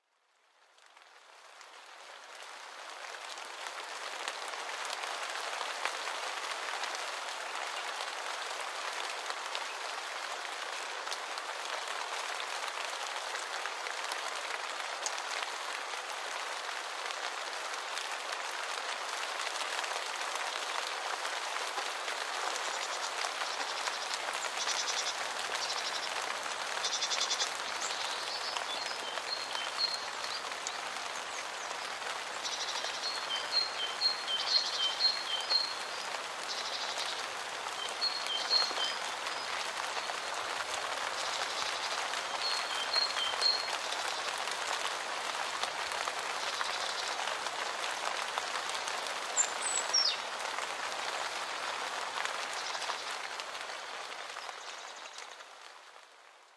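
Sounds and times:
sunshower rain: 0.1 - 56.5.

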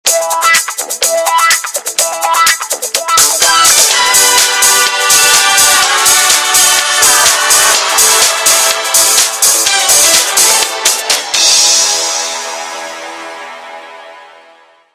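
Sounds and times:
disco music: 0.0 - 14.8.

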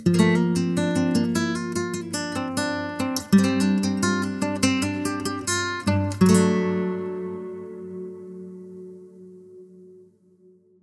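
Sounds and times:
guitar: 0.0 - 10.6.

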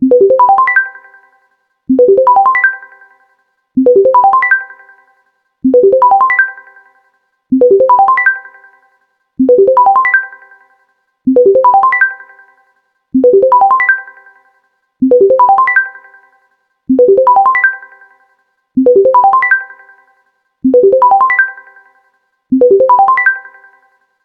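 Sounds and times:
bubble ringtone: 0.0 - 0.9, 2.0 - 2.8, 3.9 - 4.6, 5.7 - 6.5, 7.6 - 8.4, 9.4 - 10.3, 11.3 - 12.2, 13.2 - 14.0, 15.1 - 15.9, 17.0 - 17.8, 18.8 - 19.6, 20.7 - 21.6, 22.6 - 23.5.

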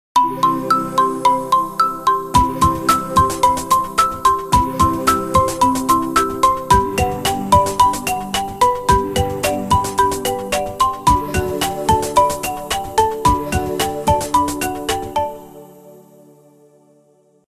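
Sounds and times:
phone ringtone: 0.2 - 15.4.

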